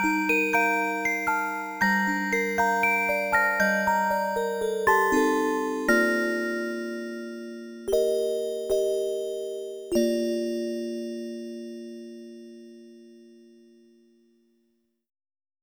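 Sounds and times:
music box: 0:00.0 - 0:12.3.

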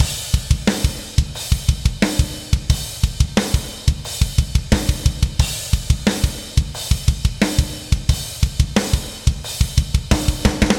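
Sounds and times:
battle drums: 0:00.0 - 0:10.7.

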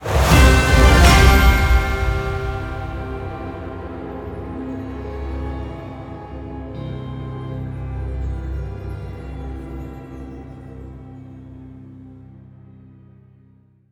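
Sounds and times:
victory jingle: 0:00.0 - 0:11.0.

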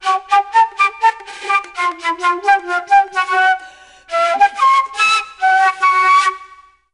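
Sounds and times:
music: 0:00.0 - 0:06.9.

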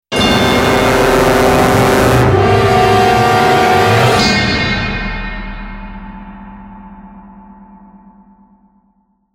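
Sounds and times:
large musical sting: 0:00.1 - 0:06.8.

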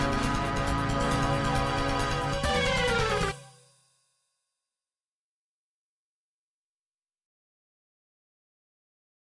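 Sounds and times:
MIDI music: 0:00.0 - 0:03.7.

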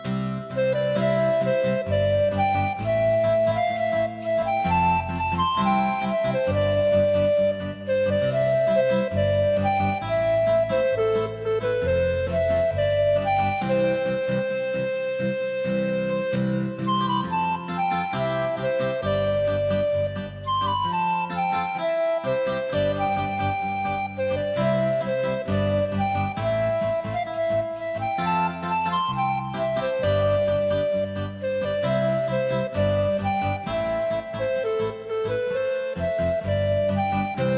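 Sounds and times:
woodwind music: 0:00.1 - 0:37.5.

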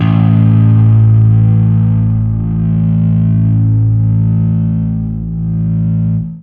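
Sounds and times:
fuzz guitar note A3: 0:00.0 - 0:06.4.

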